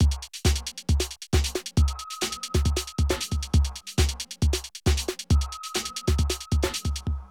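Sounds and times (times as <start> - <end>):
rave and hardcore drum loops: 0.0 - 7.2.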